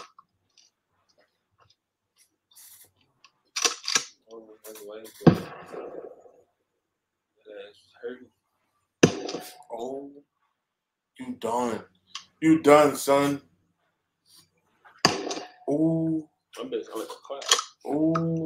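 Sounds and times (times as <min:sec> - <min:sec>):
speech: 0:04.9 - 0:06.1, 0:08.0 - 0:08.4, 0:09.7 - 0:10.3, 0:11.2 - 0:13.5, 0:15.7 - 0:18.4
gunshot fired outdoors in the rain: 0:05.2 - 0:06.3, 0:09.0 - 0:09.6.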